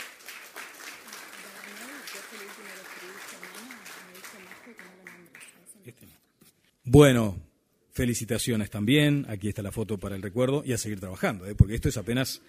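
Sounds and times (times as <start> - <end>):
applause: 0.0 - 5.8
speech: 6.9 - 7.4, 8.0 - 12.4.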